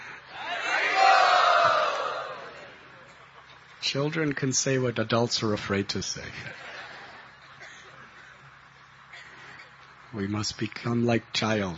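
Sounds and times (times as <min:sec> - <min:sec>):
audience cheering: 0:00.3 - 0:02.9
speech: 0:03.9 - 0:06.7, 0:10.2 - 0:11.7.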